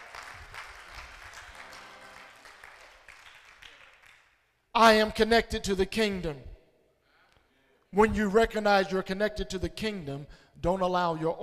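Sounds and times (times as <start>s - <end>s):
audience clapping hands: 0.0s - 4.5s
speech: 4.8s - 6.5s, 7.9s - 11.4s.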